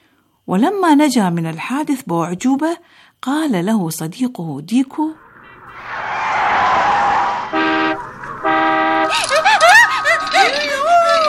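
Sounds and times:
speech: 0.5s - 5.2s
speeding car engine rushing past: 5.2s - 10.3s
car horn blasts: 7.5s - 9.2s
laughter: 8.8s - 11.2s.

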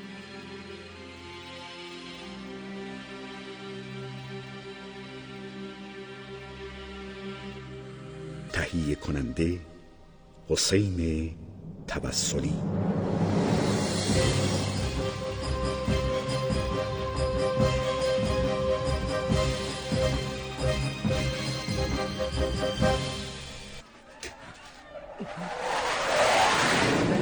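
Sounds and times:
speech: 8.7s - 9.7s, 10.5s - 13.1s
enemy aircraft engine roar overhead: 11.0s - 23.8s, 25.0s - 27.2s
rising rushing whoosh: 11.2s - 15.5s, 25.1s - 27.2s.

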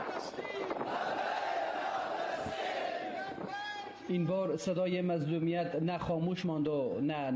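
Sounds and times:
crowd chanting protest slogans: 0.0s - 3.5s
speech: 4.1s - 7.3s.

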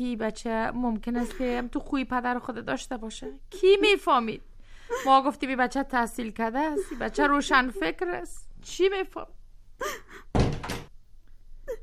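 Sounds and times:
speech: 0.0s - 10.3s
door opening: 10.4s - 10.9s.

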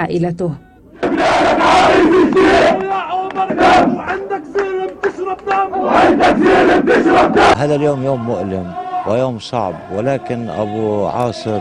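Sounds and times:
speech: 0.0s - 4.6s, 5.2s - 11.5s
large crowd chanting in unison at a mass funeral: 0.9s - 10.2s.

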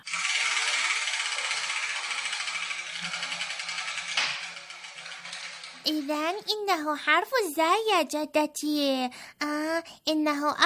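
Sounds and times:
letter wheel ratchet clicking: 0.0s - 6.5s
speech: 5.8s - 10.6s.

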